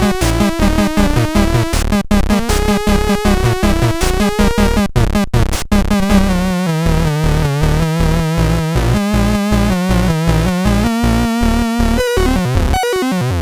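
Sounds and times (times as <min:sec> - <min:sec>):
SID chip music on CSG8580R5: 0:00.0 - 0:13.4.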